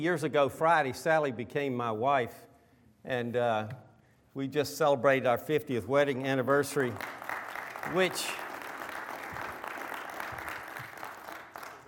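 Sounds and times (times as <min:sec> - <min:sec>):
speech: 0:00.0 - 0:07.2, 0:07.8 - 0:08.4
audience applause: 0:06.7 - 0:11.8.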